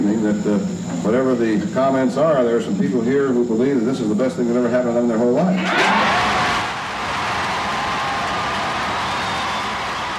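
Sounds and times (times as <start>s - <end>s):
speech: 0.3s - 6.4s
crowd cheering and applauding: 5.6s - 10.1s.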